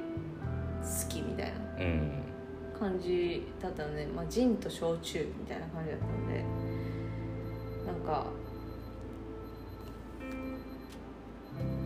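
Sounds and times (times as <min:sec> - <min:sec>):
low hum: 0:00.0 - 0:11.8
speech: 0:00.8 - 0:02.2, 0:02.8 - 0:06.7, 0:07.9 - 0:08.4
soft tonal timer beeps: 0:06.1 - 0:11.8
timer ticking: 0:07.4 - 0:11.8.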